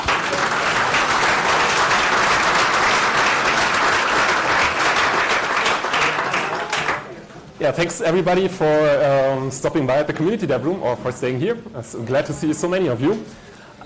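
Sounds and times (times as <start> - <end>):
audience applause: 0.0 - 7.2
speech: 7.6 - 13.8.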